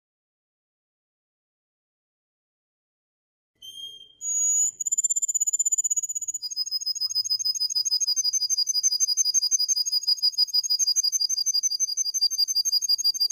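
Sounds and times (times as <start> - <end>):
Atlantic canary singing with rolling trills and whistled notes: 3.6 - 13.3.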